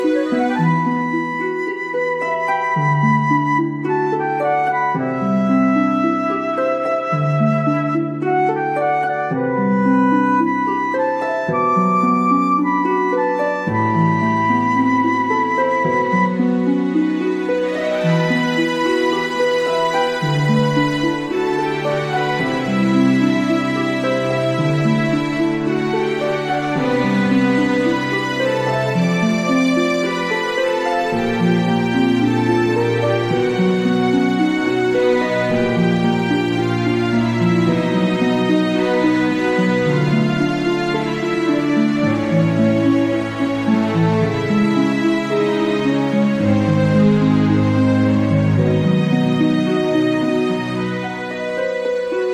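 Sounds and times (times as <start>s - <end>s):
background music: 0.0s - 52.3s.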